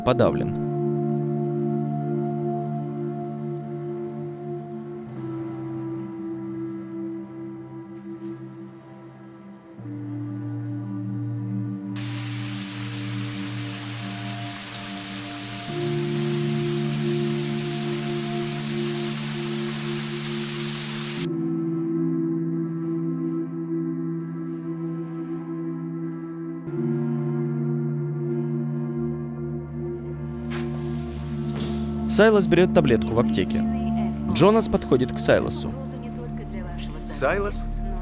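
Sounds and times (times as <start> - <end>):
speech: 0.0 - 0.6, 32.2 - 35.9, 37.2 - 37.7
music: 0.0 - 38.0
shower water spraying: 12.0 - 21.3, 30.4 - 32.0.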